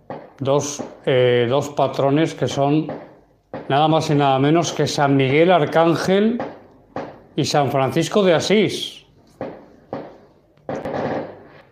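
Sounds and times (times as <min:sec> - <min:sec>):
speech: 0:00.4 - 0:03.1, 0:03.7 - 0:06.5, 0:07.4 - 0:09.0
fireworks rockets going off: 0:10.7 - 0:11.6.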